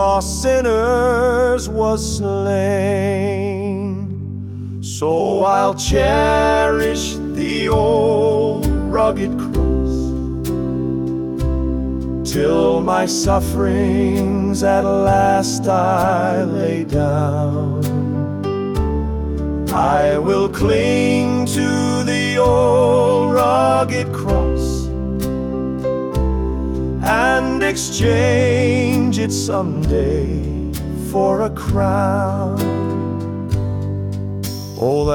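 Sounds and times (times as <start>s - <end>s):
man singing a hymn: 0.0s - 4.2s, 4.8s - 10.2s, 12.2s - 18.2s, 19.6s - 25.0s, 27.0s - 33.0s, 34.8s - 35.1s
piano: 0.0s - 35.1s.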